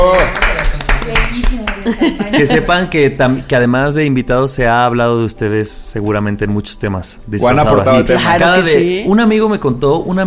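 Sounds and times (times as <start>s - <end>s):
applause for the guests: 0.0s - 1.9s
laughter: 1.8s - 2.9s
speech: 2.4s - 10.2s.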